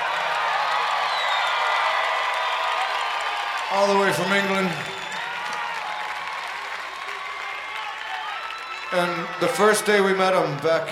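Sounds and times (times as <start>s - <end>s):
audience applause for band: 0.0s - 10.9s
speech: 3.7s - 4.9s, 8.9s - 10.9s.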